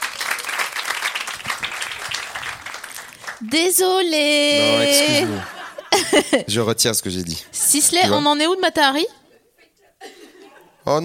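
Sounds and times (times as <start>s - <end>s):
audience applause in the hall: 0.0s - 6.1s
speech: 3.4s - 9.2s, 10.9s - 11.0s
laughter: 4.4s - 10.9s.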